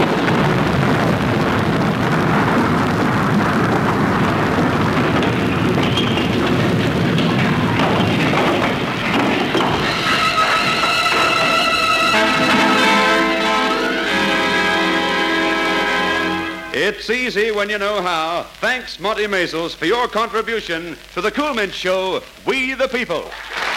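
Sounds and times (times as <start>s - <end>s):
ordinary thunderstorm: 0.0s - 16.8s
plane crashing: 0.0s - 17.0s
temple crashing down on Samson: 0.0s - 22.3s
speech: 17.4s - 23.6s.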